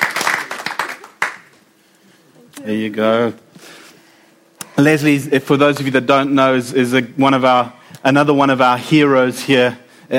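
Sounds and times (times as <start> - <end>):
audience applause: 0.0 - 1.6
speech: 2.6 - 3.8, 4.8 - 10.1.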